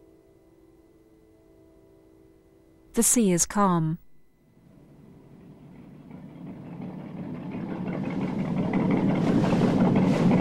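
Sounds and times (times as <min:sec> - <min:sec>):
speech: 0:03.0 - 0:04.0
small motorboat engine heading toward a yacht across a calm sea: 0:04.6 - 0:10.3.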